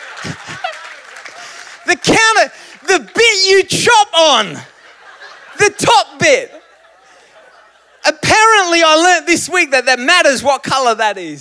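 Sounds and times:
audience clapping: 0.0 - 3.4
laughter: 0.0 - 8.7
speech: 2.0 - 4.7, 5.6 - 6.6, 8.3 - 11.4.

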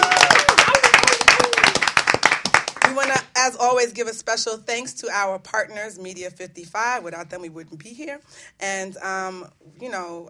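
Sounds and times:
person whooping: 0.0 - 1.8
studio audience clapping: 0.0 - 3.2
speech: 3.7 - 10.2.

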